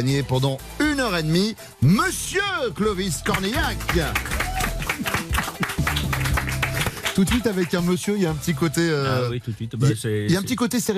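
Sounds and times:
speech: 0:00.0 - 0:04.5, 0:07.2 - 0:10.9
applause welcoming a guest onto a Sunday afternoon radio show: 0:03.2 - 0:07.9.

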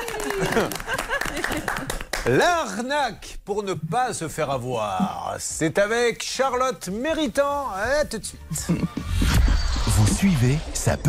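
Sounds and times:
people cheering and laughing: 0:00.0 - 0:01.9
applause: 0:00.0 - 0:02.4
speech: 0:00.4 - 0:09.2, 0:10.2 - 0:11.0.

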